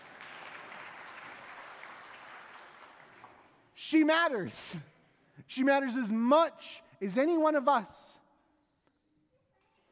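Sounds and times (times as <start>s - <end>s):
round of applause: 0.0s - 3.8s
speech: 3.8s - 4.9s, 5.5s - 8.2s.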